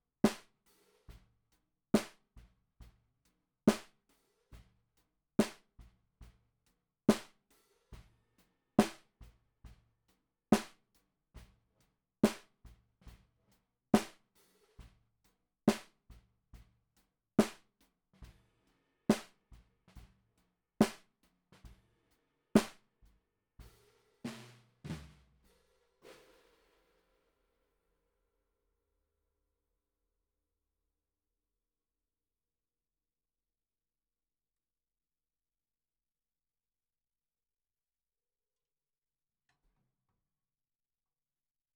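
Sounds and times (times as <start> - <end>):
snare drum recorded from the bottom: 0.2 - 1.2, 2.0 - 2.2, 3.7 - 4.0, 5.4 - 5.9, 7.1 - 8.1, 8.8 - 9.2, 10.6 - 10.8, 12.2 - 13.2, 14.0 - 15.0, 15.7 - 16.1, 17.4 - 18.5, 19.1 - 20.2, 20.8 - 21.9, 22.6 - 22.8, 23.6 - 26.9.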